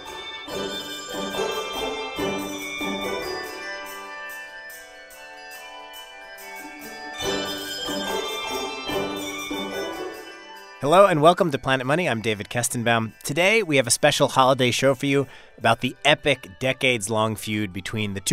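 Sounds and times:
handbell choir ringing a piece of music: 0:00.0 - 0:15.4
speech: 0:10.9 - 0:18.3.

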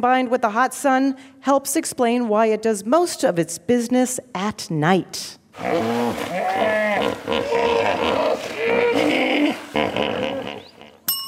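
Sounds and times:
speech: 0:00.0 - 0:10.2
hippopotamus call: 0:05.6 - 0:11.0.

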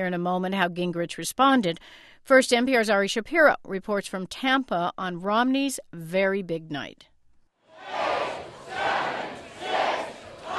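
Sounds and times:
speech: 0:00.0 - 0:07.1
large crowd chanting a countdown in unison: 0:07.7 - 0:10.5.

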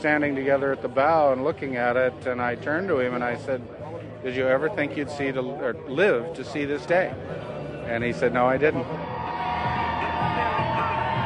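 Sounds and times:
speech: 0:00.0 - 0:09.1
crowd of well-wishers cheering and shouting: 0:08.4 - 0:11.2.

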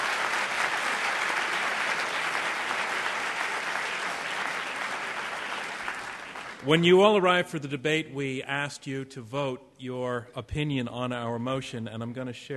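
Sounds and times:
audience round of applause: 0:00.0 - 0:06.9
speech: 0:06.6 - 0:12.5.

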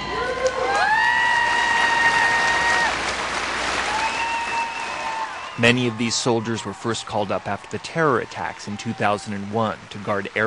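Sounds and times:
large crowd of family members cheering and applauding: 0:00.0 - 0:10.4
speech: 0:05.6 - 0:10.4.

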